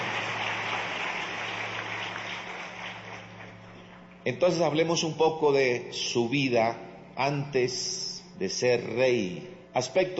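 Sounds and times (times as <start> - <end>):
crowd clapping: 0.0 - 4.2
faint low electrical hum: 0.0 - 10.1
speech: 4.2 - 10.1.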